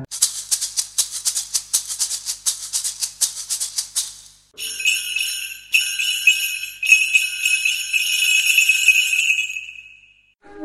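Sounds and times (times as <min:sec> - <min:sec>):
instruments playing: 0:00.3 - 0:10.1.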